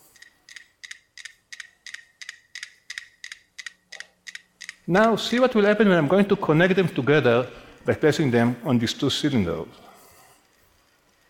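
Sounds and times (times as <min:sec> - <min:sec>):
five metronomes clicking out of phase: 0:00.0 - 0:06.0
speech: 0:04.9 - 0:09.8.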